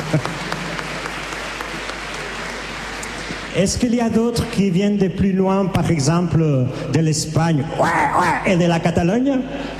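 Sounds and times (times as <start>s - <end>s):
audience applause: 0.0s - 3.8s
speech: 0.1s - 0.4s, 3.6s - 9.7s.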